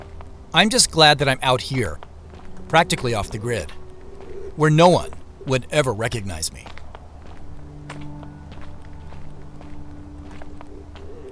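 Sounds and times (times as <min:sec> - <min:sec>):
droning tone: 0:00.0 - 0:05.6, 0:06.6 - 0:11.3
speech: 0:00.5 - 0:02.1, 0:02.7 - 0:03.8, 0:04.6 - 0:06.8
footsteps of a walker walking into a state park: 0:01.4 - 0:04.4, 0:06.6 - 0:11.3.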